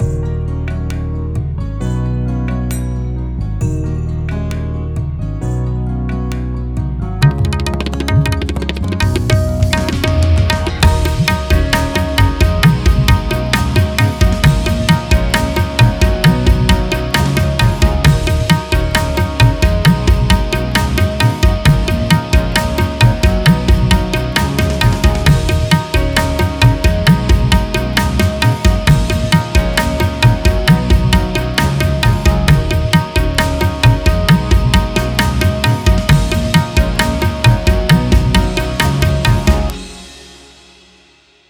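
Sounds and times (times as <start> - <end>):
tabla: 0.0 - 2.9, 3.6 - 40.8.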